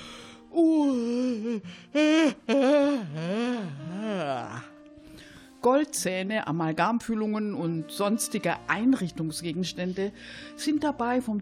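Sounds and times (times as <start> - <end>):
person performing a loud exaggerated yawn: 0.5 - 4.7
speech: 1.6 - 2.5, 5.6 - 11.4.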